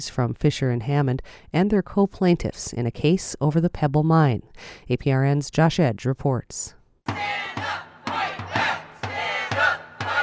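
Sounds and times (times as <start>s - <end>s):
speech: 0.0s - 7.4s
protest crowd chanting: 7.1s - 10.2s.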